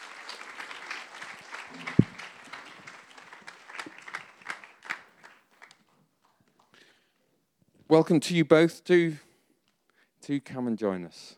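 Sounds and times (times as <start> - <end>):
audience applause welcoming two guests onto a stage: 0.0 - 5.8
speech: 7.9 - 9.2, 10.3 - 11.3.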